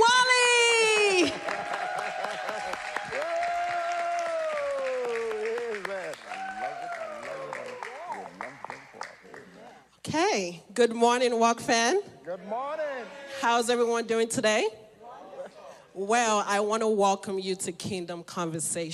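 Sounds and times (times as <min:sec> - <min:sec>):
audience clapping for a moderator at a church gathering: 0:00.6 - 0:09.8
speech: 0:10.4 - 0:12.8, 0:13.4 - 0:14.8, 0:16.0 - 0:18.9.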